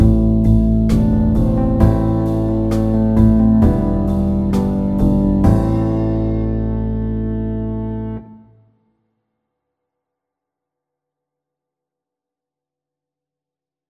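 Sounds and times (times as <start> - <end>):
pop ballad: 0.0 - 8.2.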